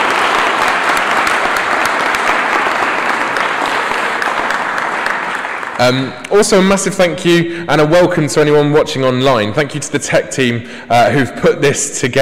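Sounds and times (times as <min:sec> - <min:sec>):
crowd applause at a candlelit church service: 0:00.0 - 0:06.4
speech: 0:05.8 - 0:12.2.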